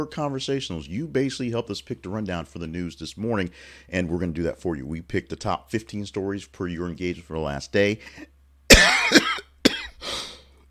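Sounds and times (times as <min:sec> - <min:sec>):
speech: 0:00.0 - 0:09.4
host on a live morning news show coughing: 0:08.7 - 0:10.2.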